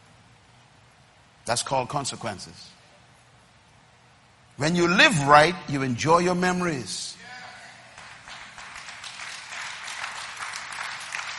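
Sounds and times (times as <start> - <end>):
speech: 1.5 - 2.8, 4.6 - 7.2
audience clapping: 7.3 - 11.3.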